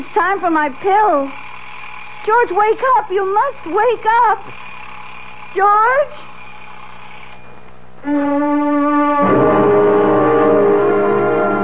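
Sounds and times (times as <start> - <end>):
speech: 0.1 - 1.4, 2.2 - 4.6, 5.5 - 6.3, 8.0 - 9.5
alarm going off: 8.5 - 11.6.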